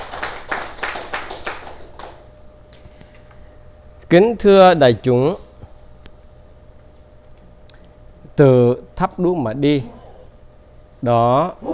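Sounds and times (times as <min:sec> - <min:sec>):
audience at a Buddhist dharma talk clapping in unison: 0:00.0 - 0:02.3
speech: 0:04.1 - 0:05.4, 0:08.4 - 0:10.0, 0:11.0 - 0:11.7.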